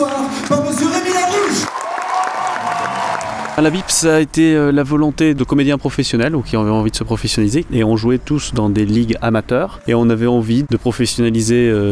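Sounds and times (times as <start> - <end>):
theatre audience applauding: 0.0 - 4.2
theatre audience cheers and whoops: 1.2 - 3.9
speech: 3.6 - 11.8.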